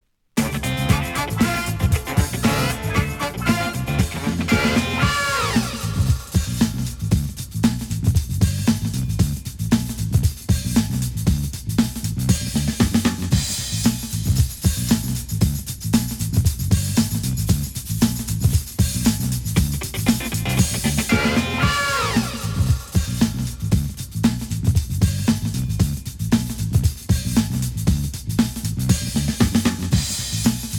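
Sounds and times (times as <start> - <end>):
bonus beats: 0.4 - 30.7.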